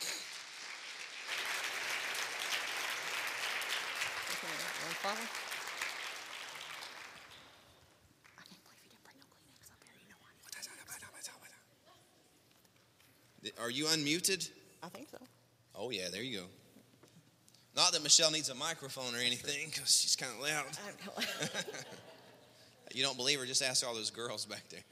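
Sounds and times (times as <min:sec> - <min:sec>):
audience applause welcoming a speaker onto a stage: 0:00.0 - 0:07.8
speech: 0:04.6 - 0:05.5, 0:13.6 - 0:16.6, 0:17.9 - 0:22.2, 0:22.9 - 0:24.9
laughter: 0:20.5 - 0:22.7.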